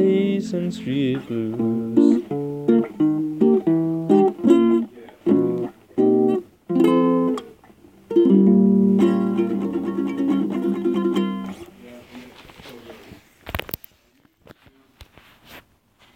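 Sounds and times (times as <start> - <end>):
blues music: 0.0 - 11.9.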